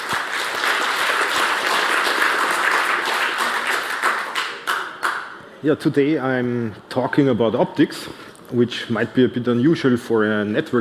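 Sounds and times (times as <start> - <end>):
audience applause welcoming a speaker at a networking technology talk: 0.0 - 5.2
speech: 5.6 - 10.8.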